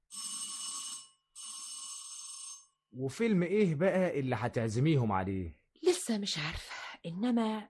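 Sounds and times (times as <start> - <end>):
electric call bell rung to call a servant: 0.0 - 2.9
speech: 2.9 - 7.6.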